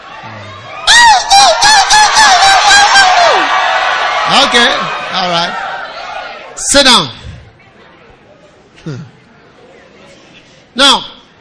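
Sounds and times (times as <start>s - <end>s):
audience screaming: 0.0s - 6.6s
speech: 4.4s - 5.6s, 6.6s - 7.2s, 8.8s - 9.1s, 10.8s - 11.1s.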